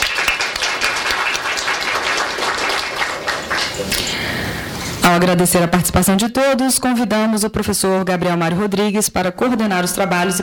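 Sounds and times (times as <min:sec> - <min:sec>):
applause: 0:00.0 - 0:04.2
speech: 0:05.1 - 0:10.4.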